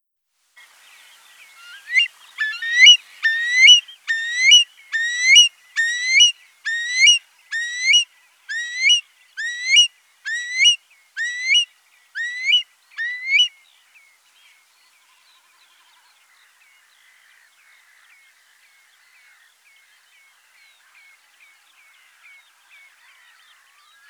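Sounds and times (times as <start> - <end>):
curlew whistled calls: 1.6 - 13.5.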